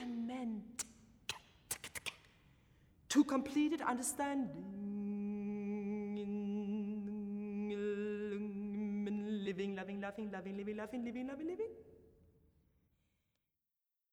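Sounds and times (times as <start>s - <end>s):
person singing: 3.1s - 11.7s.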